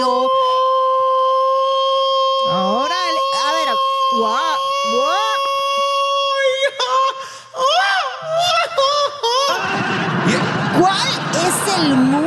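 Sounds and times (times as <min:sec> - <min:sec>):
man yelling: 0:00.0 - 0:09.7
laughter: 0:08.3 - 0:12.2.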